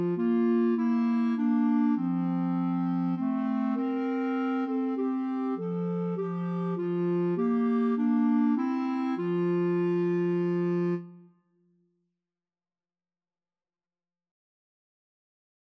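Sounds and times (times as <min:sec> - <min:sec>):
clarinet carol karaoke melody: 0:00.0 - 0:11.3.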